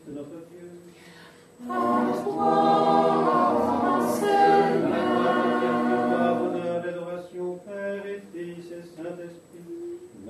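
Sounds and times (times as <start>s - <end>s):
Orthodox vigil chant: 1.6s - 8.2s.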